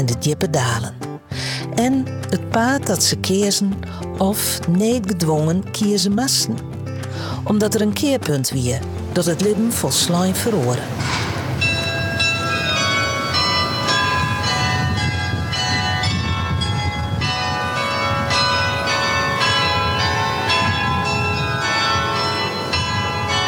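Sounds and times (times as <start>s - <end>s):
speech: 0.0s - 11.2s
city hall carillon bells ringing: 11.0s - 23.4s.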